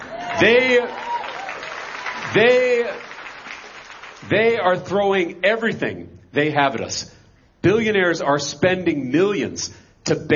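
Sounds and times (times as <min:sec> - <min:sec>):
whooping cheers: 0:00.0 - 0:02.3
large indoor rally crowd applauding: 0:00.0 - 0:04.4
speech: 0:00.4 - 0:01.0, 0:02.3 - 0:03.0, 0:04.3 - 0:10.3.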